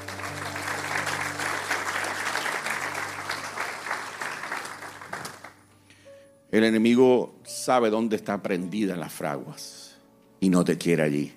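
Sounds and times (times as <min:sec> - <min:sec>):
audience applause: 0:00.0 - 0:05.6
speech: 0:06.5 - 0:09.8, 0:10.4 - 0:11.3.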